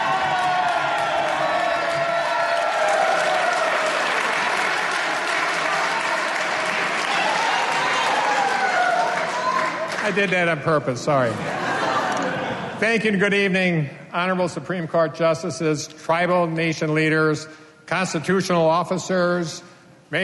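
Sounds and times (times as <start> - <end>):
audience applause: 0.0 - 10.3
speech: 10.1 - 11.7, 12.8 - 20.2
laughter: 11.3 - 12.8.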